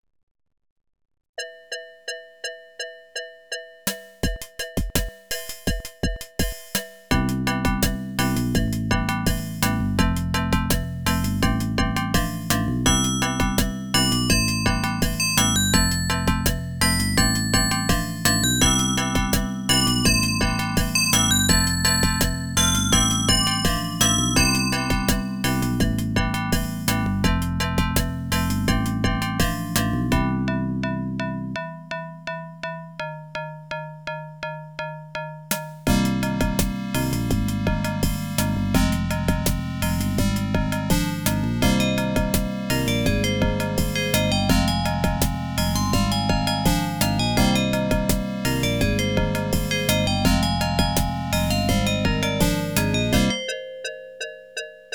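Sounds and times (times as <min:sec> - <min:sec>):
AdLib OPL2 FM synth music: 0:03.2 - 0:54.9.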